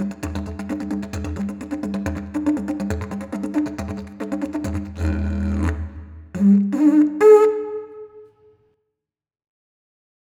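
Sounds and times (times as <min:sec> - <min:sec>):
didgeridoo: 0:00.0 - 0:08.2.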